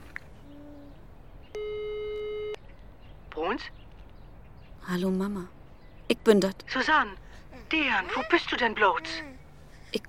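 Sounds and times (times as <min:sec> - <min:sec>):
steady electronic telephone tone buzzing on the line: 0:01.5 - 0:02.6
speech: 0:04.9 - 0:09.3.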